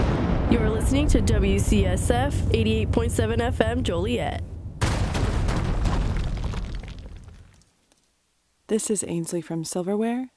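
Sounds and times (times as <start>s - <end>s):
explosion sound effects: 0.0s - 7.6s
speech: 0.5s - 4.5s, 8.7s - 10.3s.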